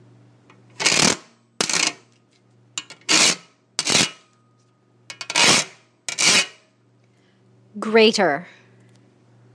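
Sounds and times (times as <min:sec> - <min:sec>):
kitchen grater: 0:00.8 - 0:02.0, 0:03.0 - 0:04.2, 0:05.1 - 0:06.6.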